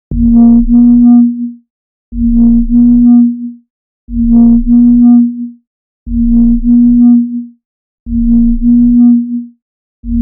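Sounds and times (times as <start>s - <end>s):
little low vibration: 0.1s - 1.6s, 2.2s - 10.1s.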